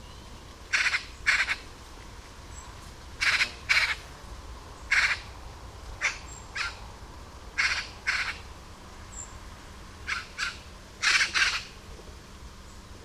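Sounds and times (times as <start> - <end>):
Eurasian magpie uttering rough scratchy calls: 0.7 - 1.7, 3.2 - 4.0, 4.9 - 5.3, 6.0 - 6.8, 7.6 - 8.4, 10.0 - 11.8.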